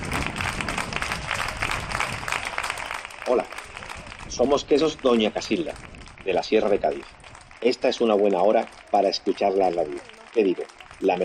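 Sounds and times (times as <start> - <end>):
applause for the heroes: 0.0 - 11.2
speech: 3.3 - 3.6, 4.4 - 11.2.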